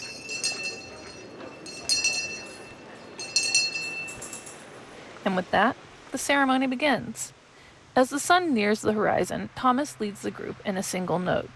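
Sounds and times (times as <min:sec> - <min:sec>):
bell being rung: 0:00.0 - 0:04.8
speech: 0:05.2 - 0:07.4, 0:08.0 - 0:11.5.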